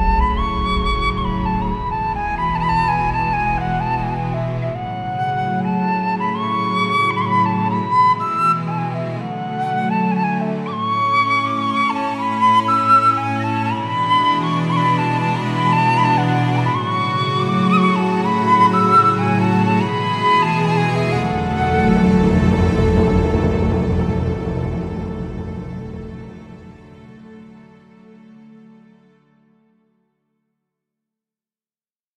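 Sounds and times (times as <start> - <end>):
whistles: 0.0 - 24.3
ethnic flutes: 0.0 - 27.4.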